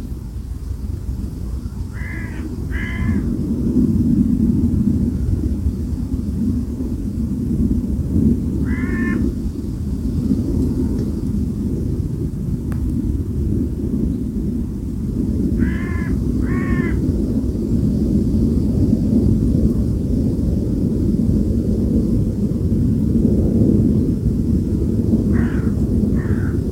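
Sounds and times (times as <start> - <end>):
loud steady wind rush: 0.0 - 26.7
bird cawing: 1.4 - 3.3, 8.6 - 9.3, 15.6 - 17.0, 25.3 - 26.6.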